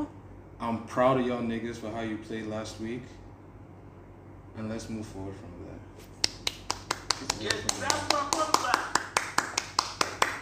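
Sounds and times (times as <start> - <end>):
speech: 0.6 - 3.2, 4.6 - 6.2, 7.2 - 8.8
hands clapping: 6.2 - 10.4.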